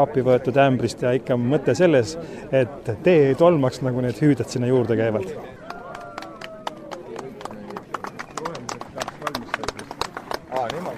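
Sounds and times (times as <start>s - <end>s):
speech: 0.0s - 5.7s
crowd applause: 5.5s - 10.9s.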